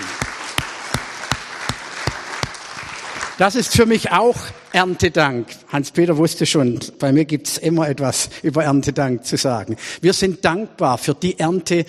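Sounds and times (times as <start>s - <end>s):
audience applause: 0.0s - 3.9s
speech: 3.4s - 11.8s.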